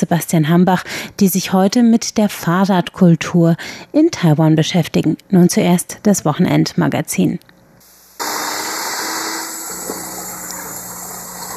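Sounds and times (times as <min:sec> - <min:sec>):
speech: 0:00.0 - 0:07.5
electric hand mixer whirring: 0:08.2 - 0:11.5.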